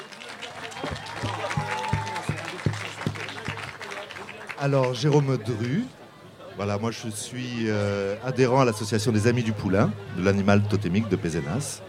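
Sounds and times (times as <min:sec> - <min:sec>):
audience applause: 0:00.0 - 0:05.4
speech: 0:04.6 - 0:06.0, 0:06.6 - 0:11.8.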